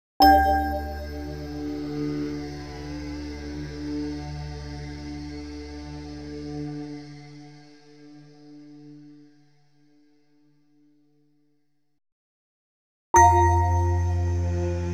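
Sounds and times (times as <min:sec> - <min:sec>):
bell atmosphere: 0:00.2 - 0:01.8, 0:13.2 - 0:14.8.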